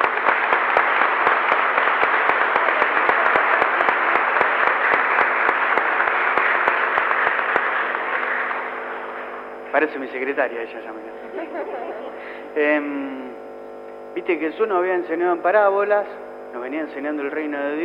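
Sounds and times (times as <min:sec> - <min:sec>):
audience applause: 0:00.0 - 0:09.5
speech: 0:09.8 - 0:13.4, 0:14.2 - 0:17.8
laughter: 0:11.2 - 0:12.4.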